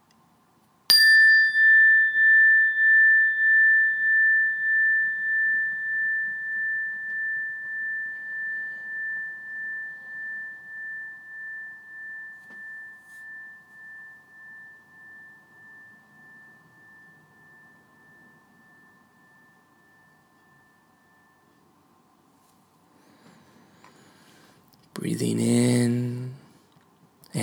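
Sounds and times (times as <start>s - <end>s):
meditation bell ringing: 0.9s - 26.2s
speech: 25.0s - 26.1s.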